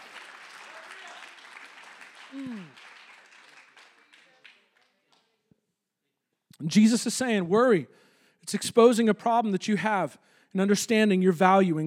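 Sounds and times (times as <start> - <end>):
audience clapping hands: 0.0 - 5.4
speech: 2.3 - 2.9, 6.6 - 11.8.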